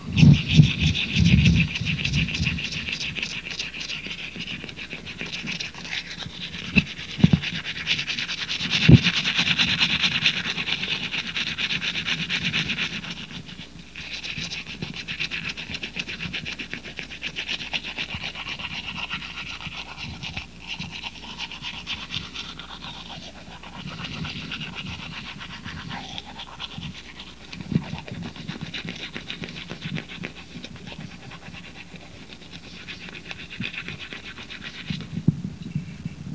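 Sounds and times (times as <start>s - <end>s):
teeth brushing: 0.0s - 36.3s.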